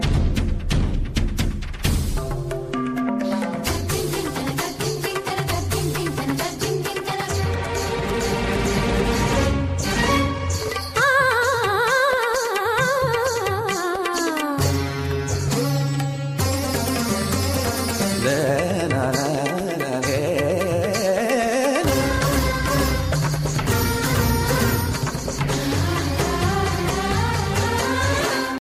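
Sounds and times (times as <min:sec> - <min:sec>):
music: 0:00.0 - 0:28.6.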